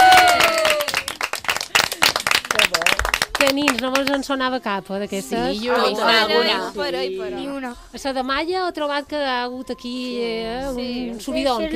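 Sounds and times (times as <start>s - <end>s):
loud applause: 0.0s - 3.8s
speech: 3.4s - 11.7s.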